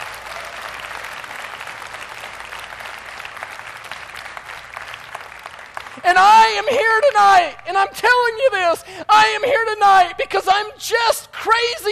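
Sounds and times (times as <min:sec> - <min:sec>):
audience clapping: 0:00.0 - 0:07.1
speech: 0:06.0 - 0:11.8.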